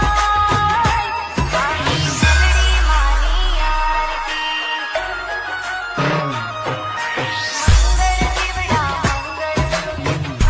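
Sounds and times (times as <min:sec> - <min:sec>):
aarti devotional song ringtone: 0:00.2 - 0:10.4.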